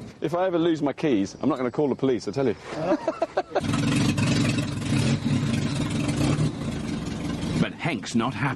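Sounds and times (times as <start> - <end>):
speech: 0.2 - 4.8, 7.9 - 8.5
laughter: 2.7 - 3.7
van engine turning over, starting and idling: 3.6 - 8.5.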